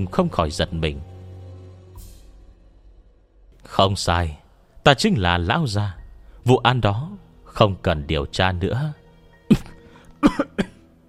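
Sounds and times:
speech: 0.0 - 1.1, 3.6 - 10.5
dry hacking coughs: 9.5 - 10.9.

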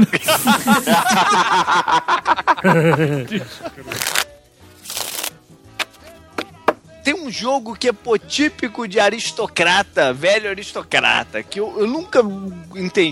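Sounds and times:
speech: 0.0 - 4.2, 7.2 - 13.1
people chatting and laughing: 0.0 - 4.3
Spanish deck of playing cards being shuffled: 3.8 - 6.0.

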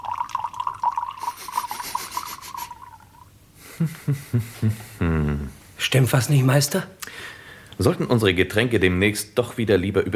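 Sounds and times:
wine poured into long-stemmed glasses: 0.0 - 3.3
speech: 3.8 - 10.1.

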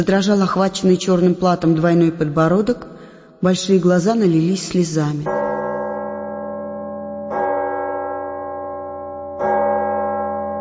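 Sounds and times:
speech: 0.0 - 5.4
church bell tolling slowly in palace church tower: 5.2 - 10.6.

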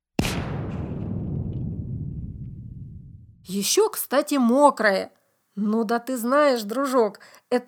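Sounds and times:
rifle gunshot: 0.2 - 3.4
speech: 3.5 - 7.6.

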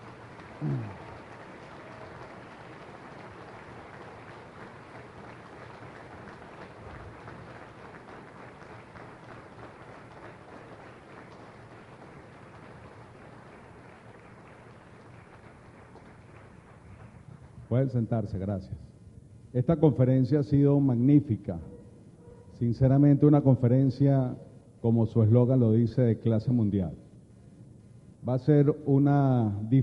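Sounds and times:
audience applause: 0.0 - 17.6
speech: 0.6 - 1.0, 17.7 - 18.9, 19.6 - 21.7, 22.6 - 27.0, 28.2 - 29.8.

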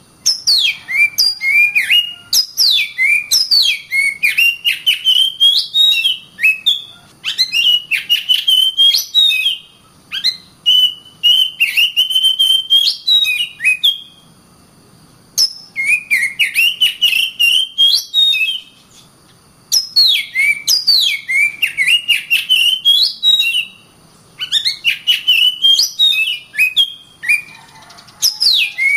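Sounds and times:
oriental magpie-robin whistling tutor song: 0.2 - 14.2, 15.4 - 19.1, 19.7 - 23.8, 24.4 - 28.9.

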